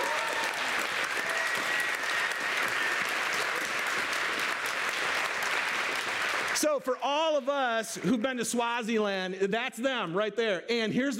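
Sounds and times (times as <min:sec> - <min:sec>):
audience applause: 0:00.0 - 0:07.4
speech: 0:06.7 - 0:11.1.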